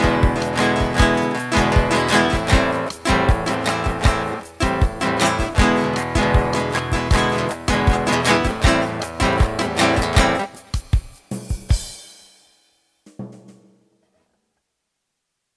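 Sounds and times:
guitar: 0.0 - 10.9.

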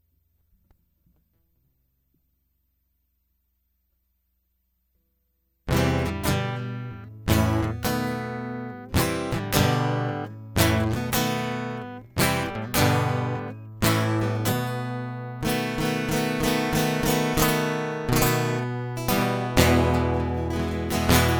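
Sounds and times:
guitar loop: 5.7 - 21.3.

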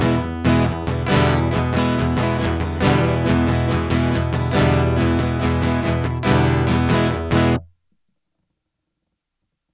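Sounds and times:
instrumental music: 0.0 - 7.7.

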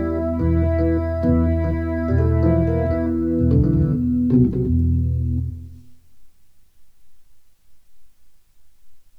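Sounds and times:
organ chord in E minor: 0.0 - 5.9.

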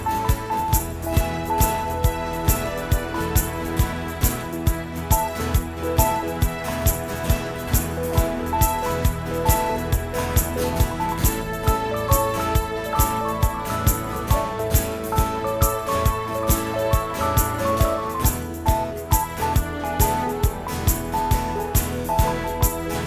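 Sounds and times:
rainy day instrumental music: 0.0 - 23.0.

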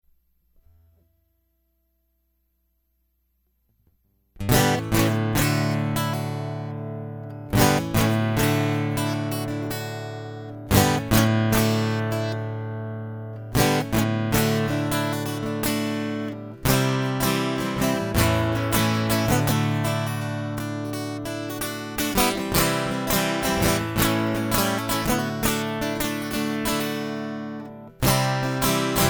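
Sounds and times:
guitar prelude: 4.4 - 29.0.

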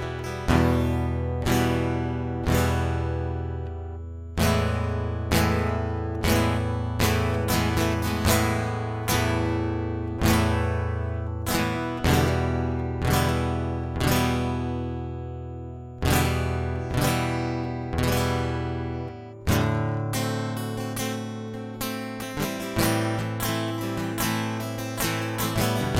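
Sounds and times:
guitar loop: 0.0 - 25.9.

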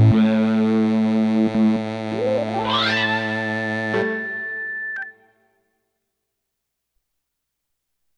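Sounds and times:
instrumental interplay: 0.1 - 5.3.

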